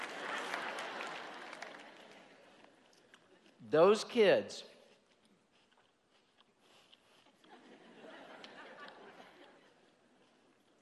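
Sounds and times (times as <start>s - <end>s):
audience applause: 0.0s - 2.5s
laughter: 0.0s - 2.6s, 7.3s - 10.4s
speech: 3.7s - 4.7s.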